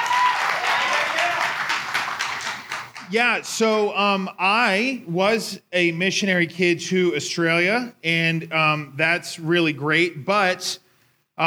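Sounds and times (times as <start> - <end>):
audience clapping: 0.0 - 3.6
speech: 3.1 - 10.8.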